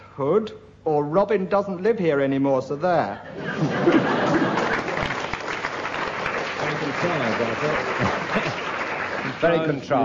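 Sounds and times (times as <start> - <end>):
laughter: 0.0 - 3.1, 4.5 - 7.1
speech: 0.2 - 4.1, 6.9 - 8.6, 9.4 - 10.0
audience applause for a comedy panel show: 3.8 - 10.0.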